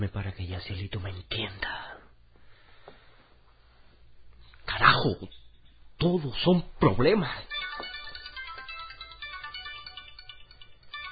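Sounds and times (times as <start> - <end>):
speech: 0.0 - 2.0, 4.8 - 5.4, 6.0 - 7.6
phone ringing with a dense electronic ringtone: 7.5 - 11.1.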